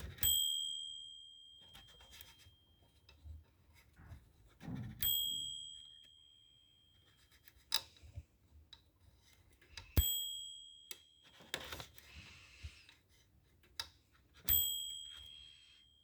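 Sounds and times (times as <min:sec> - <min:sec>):
ding: 0:00.2 - 0:03.3, 0:04.7 - 0:07.3, 0:10.0 - 0:11.7, 0:14.5 - 0:16.0.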